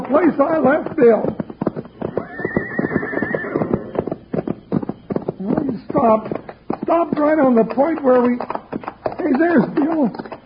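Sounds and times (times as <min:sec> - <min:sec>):
galloping hoofbeats: 0:00.0 - 0:10.4
speech: 0:00.1 - 0:01.4, 0:06.0 - 0:08.5, 0:09.3 - 0:10.3
horse whinnying: 0:01.8 - 0:04.3.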